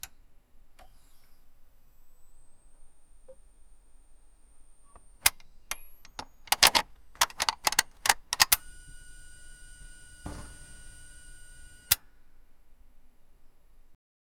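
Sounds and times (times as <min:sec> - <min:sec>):
mech machine: 0:04.9 - 0:12.2.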